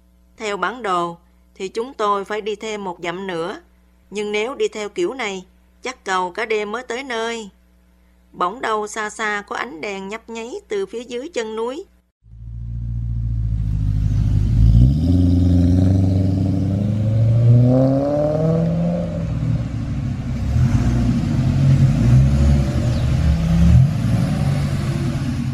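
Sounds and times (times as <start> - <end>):
speech: 0.5 - 7.6, 8.3 - 11.9
truck engine revving through gear changes: 12.3 - 25.5.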